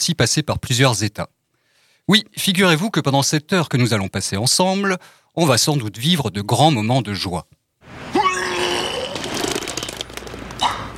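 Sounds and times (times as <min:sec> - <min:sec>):
speech: 0:00.0 - 0:01.4, 0:02.1 - 0:08.1
person vomiting: 0:08.1 - 0:09.3, 0:10.6 - 0:10.9.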